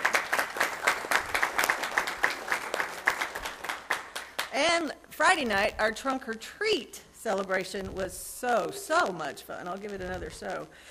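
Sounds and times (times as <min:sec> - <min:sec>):
audience applause: 0:00.0 - 0:04.5
speech: 0:04.6 - 0:10.8.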